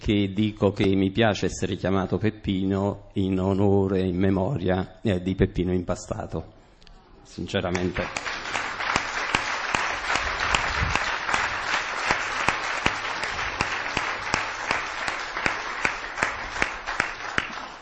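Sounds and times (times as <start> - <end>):
speech: 0.0 - 6.6, 7.3 - 8.6
audience applause: 7.8 - 17.7.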